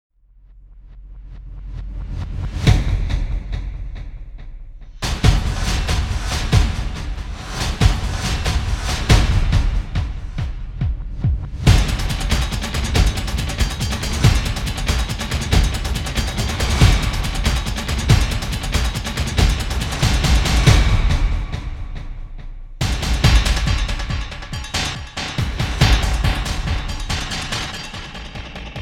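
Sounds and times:
drums remix: 1.4s - 28.8s.

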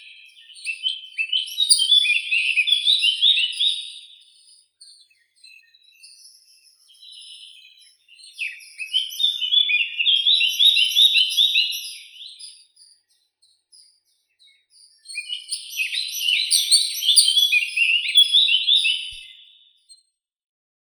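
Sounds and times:
Sylvia atricapilla blackcap singing: 0.0s - 12.8s, 13.8s - 19.9s.

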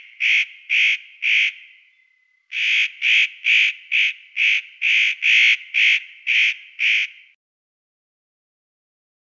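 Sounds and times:
nutcracker Nucifraga caryocatactes calling: 0.0s - 7.4s.

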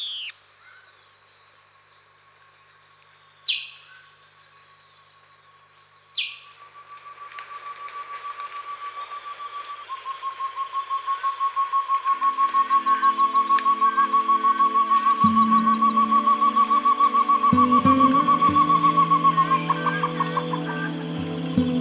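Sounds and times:
Atlantic ambience at San Pedro after rain: 6.5s - 21.8s.

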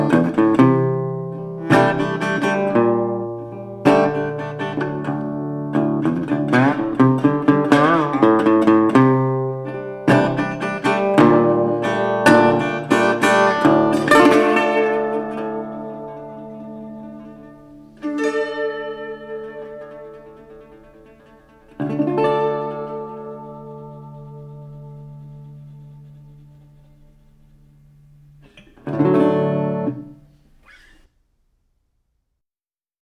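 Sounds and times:
instrumental music: 0.0s - 31.1s.

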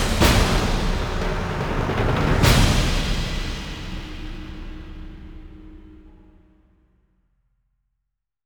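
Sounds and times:
percussion: 0.0s - 6.6s.

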